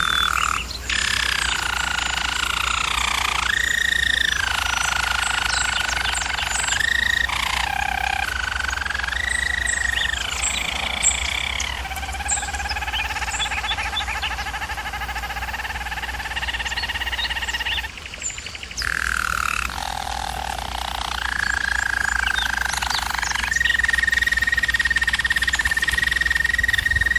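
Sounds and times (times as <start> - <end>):
German Roller canary rolling song: 0.0 - 27.1.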